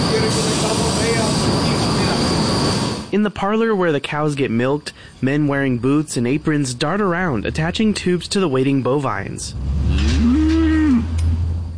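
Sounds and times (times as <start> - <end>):
power washers cleaning at a dairy: 0.0 - 2.2
dairy fans roaring to cool cows in southwest Kansas: 0.0 - 3.2, 5.9 - 11.7
speech: 3.2 - 9.8.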